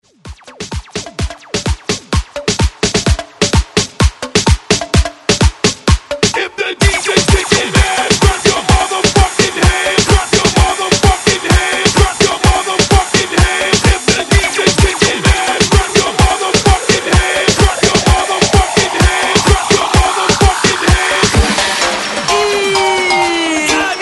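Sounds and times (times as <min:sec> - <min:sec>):
upbeat dance track at 128 BPM: 0:00.0 - 0:24.0.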